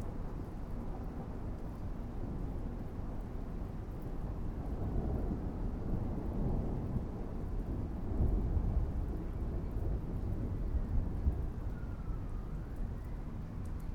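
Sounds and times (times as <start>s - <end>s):
city background noise: 0.0s - 13.9s
thunderstorm: 0.0s - 13.9s
city sirens: 9.9s - 13.9s.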